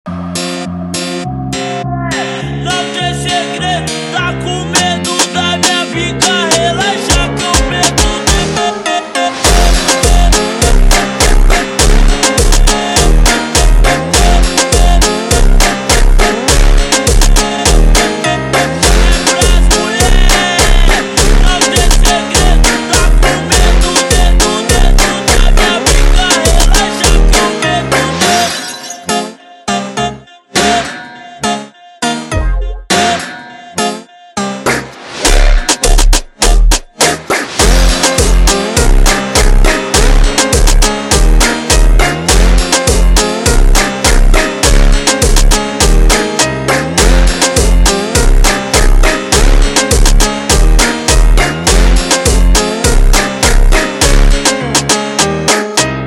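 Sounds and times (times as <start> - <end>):
ultra slowed funk music: 0.1 - 56.0.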